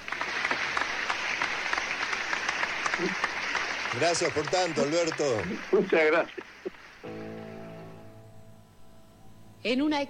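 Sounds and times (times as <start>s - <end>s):
applause: 0.0s - 7.1s
speech: 3.0s - 3.3s, 3.9s - 7.2s, 9.6s - 10.0s.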